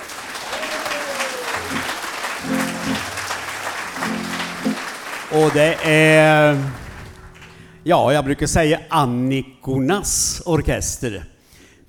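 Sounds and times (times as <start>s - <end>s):
audience applause for an orchestra: 0.0s - 7.8s
speech: 5.3s - 6.8s, 7.8s - 11.3s.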